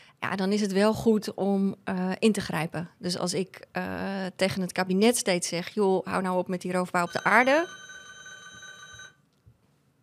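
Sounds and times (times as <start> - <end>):
speech: 0.2 - 7.8
bell ringing: 7.1 - 9.2.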